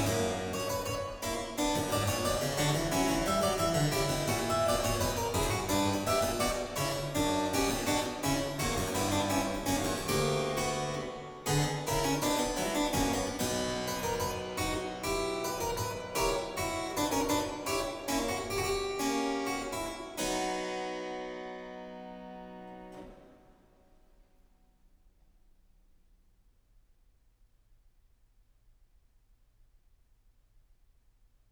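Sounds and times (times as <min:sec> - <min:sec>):
harpsichord fugue: 0:00.0 - 0:23.6.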